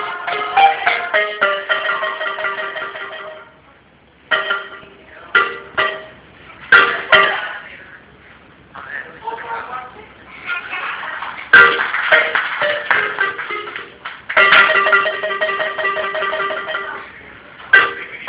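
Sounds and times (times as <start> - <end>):
marimba: 0.0 - 3.6, 4.3 - 7.6, 11.5 - 18.2.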